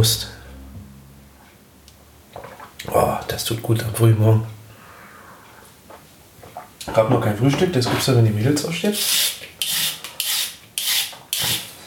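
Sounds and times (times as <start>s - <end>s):
speech: 0.0s - 0.4s, 2.9s - 4.6s, 6.8s - 9.8s
peeler scraping skin off a carrot: 9.0s - 11.8s.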